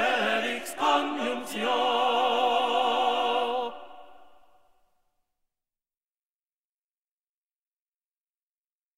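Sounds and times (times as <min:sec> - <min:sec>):
tenor singing: 0:00.0 - 0:04.6.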